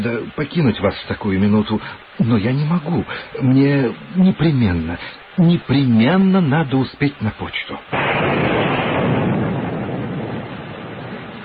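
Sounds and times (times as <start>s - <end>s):
speech: 0.0s - 8.5s
thunder: 7.9s - 11.4s.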